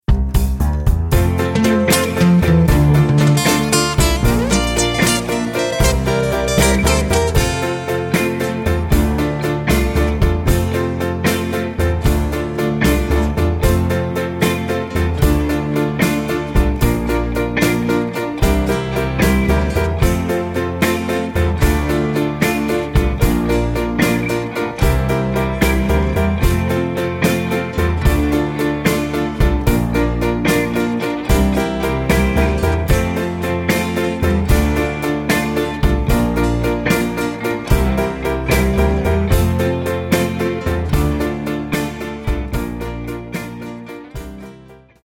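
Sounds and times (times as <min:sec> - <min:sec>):
backing track in F: 0:00.4 - 0:44.5.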